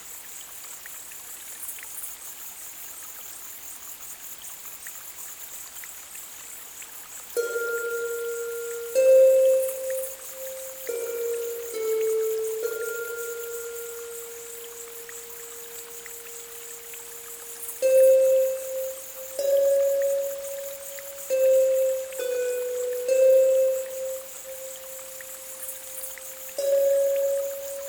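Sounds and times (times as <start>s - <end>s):
flowing water: 0.0s - 27.8s
seashore waves: 7.4s - 27.8s.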